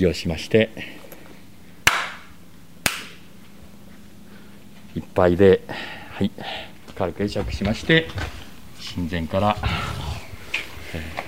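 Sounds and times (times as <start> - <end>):
speech: 0.0 - 1.0, 5.2 - 10.0, 10.9 - 11.2
ritual hand claps at Shinto shrine: 1.8 - 3.2.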